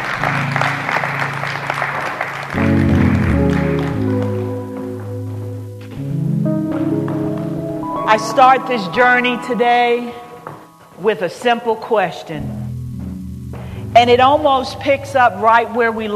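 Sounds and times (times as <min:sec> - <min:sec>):
audience applause: 0:00.0 - 0:04.6
sustained keyboard or organ chords: 0:02.4 - 0:16.1
speech: 0:08.1 - 0:10.2, 0:11.0 - 0:12.6, 0:14.0 - 0:16.1.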